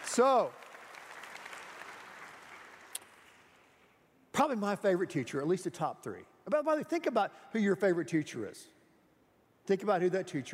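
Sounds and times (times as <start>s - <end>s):
audience applause for teachers: 0.0s - 3.6s
speech: 0.2s - 0.6s, 4.4s - 8.8s, 9.6s - 10.5s.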